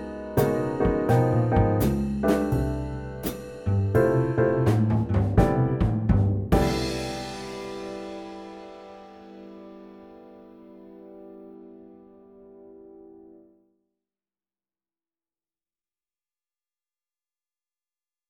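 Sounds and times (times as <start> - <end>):
jazz band playing: 0.0 - 9.8.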